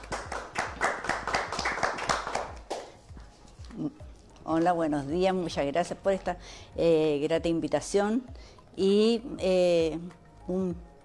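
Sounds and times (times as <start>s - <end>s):
applause: 0.0s - 3.0s
speech: 4.5s - 10.9s.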